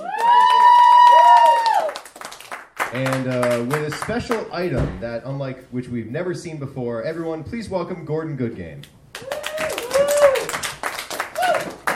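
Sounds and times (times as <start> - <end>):
audience applause: 0.0 - 3.8, 9.2 - 11.9
speech: 2.9 - 9.0.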